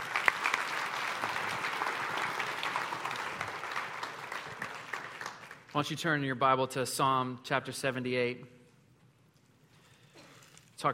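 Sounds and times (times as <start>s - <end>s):
audience applause from a sizable crowd: 0.0s - 5.7s
speech: 5.8s - 8.6s.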